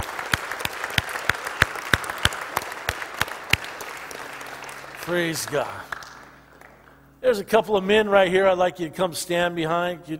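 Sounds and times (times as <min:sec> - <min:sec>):
audience clapping: 0:00.0 - 0:07.0
speech: 0:05.1 - 0:05.9, 0:07.2 - 0:10.1.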